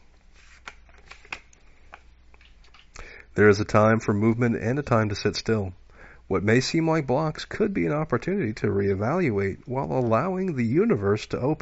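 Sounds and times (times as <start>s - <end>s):
oracle deck cards shuffling and sliding: 0.1s - 2.9s
oracle card snaps: 0.6s - 2.1s
speech: 3.4s - 11.6s.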